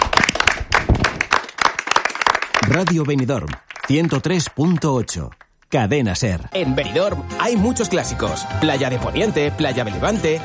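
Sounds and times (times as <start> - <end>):
small group applauding a radio show team: 0.0 - 5.9
speech: 2.7 - 10.4.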